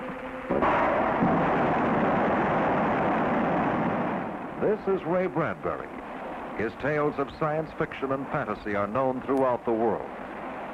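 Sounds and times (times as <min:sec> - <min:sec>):
moon rocket engine test firing: 0:00.5 - 0:06.8
speech: 0:04.6 - 0:10.2.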